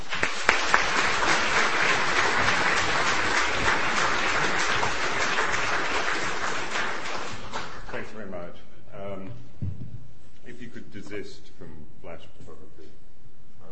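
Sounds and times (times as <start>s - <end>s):
audience applause at a literary weekend talk: 0.0s - 8.1s.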